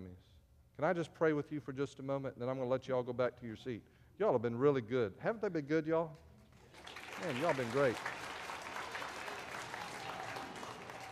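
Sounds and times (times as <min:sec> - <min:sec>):
speech: 0:00.8 - 0:08.2
audience clapping: 0:06.5 - 0:11.0.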